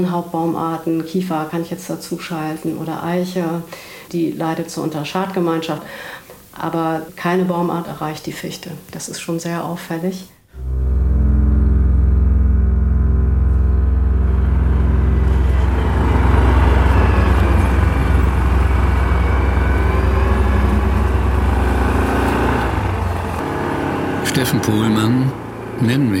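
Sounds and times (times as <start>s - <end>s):
speech: 0.0s - 10.9s, 24.4s - 26.1s
all-terrain quad bike engine driving: 10.6s - 26.1s.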